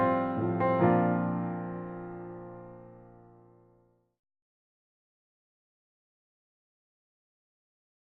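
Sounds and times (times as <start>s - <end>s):
introspective piano etude: 0.0s - 3.8s.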